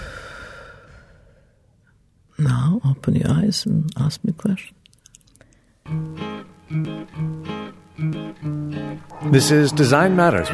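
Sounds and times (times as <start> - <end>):
deep breath out: 0.0 - 1.8
speech: 2.4 - 4.8, 9.3 - 10.5.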